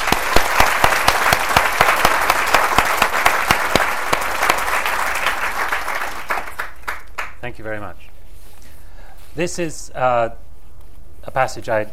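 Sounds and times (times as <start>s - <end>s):
audience applause at a book reading: 0.0s - 7.4s
speech: 7.5s - 8.1s, 9.3s - 10.4s, 11.2s - 11.9s.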